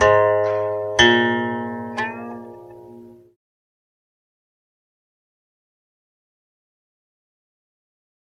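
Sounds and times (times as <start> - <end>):
Chinese guqin playing: 0.0 - 3.4.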